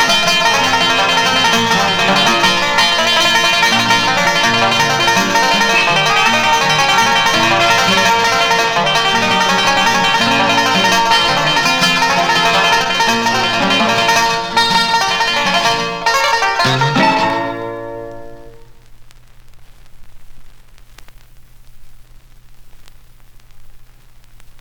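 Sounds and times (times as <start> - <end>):
banjo: 0.0 - 18.7.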